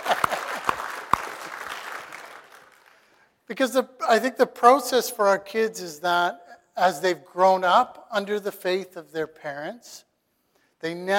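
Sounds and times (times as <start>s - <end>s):
audience applauding: 0.0s - 3.2s
speech: 3.5s - 10.1s, 10.8s - 11.1s.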